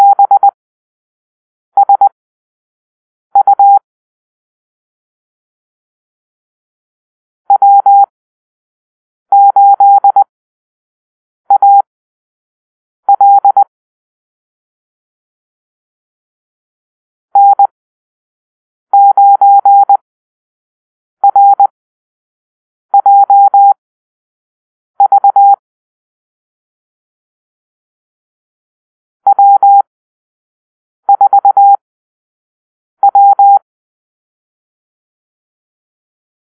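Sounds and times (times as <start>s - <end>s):
morse code call-sign beeps: 0.0s - 0.6s, 1.8s - 2.1s, 3.4s - 3.8s, 7.5s - 8.1s, 9.3s - 10.3s, 11.5s - 11.9s, 13.1s - 13.7s, 17.4s - 17.7s, 19.0s - 20.0s, 21.2s - 21.7s, 23.0s - 23.8s, 25.0s - 25.6s, 29.3s - 29.9s, 31.1s - 31.8s, 33.0s - 33.6s.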